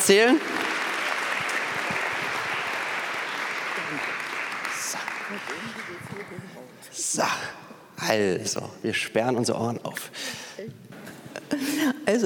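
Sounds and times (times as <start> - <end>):
audience applause: 0.0 - 6.4
speech: 0.1 - 0.6, 5.3 - 12.2.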